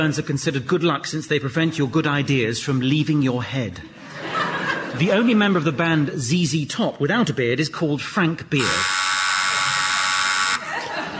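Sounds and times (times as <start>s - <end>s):
speech: 0.0s - 4.3s, 4.9s - 9.0s
laughter: 3.8s - 6.1s, 10.6s - 11.1s
long buzzer buzz: 8.6s - 10.7s.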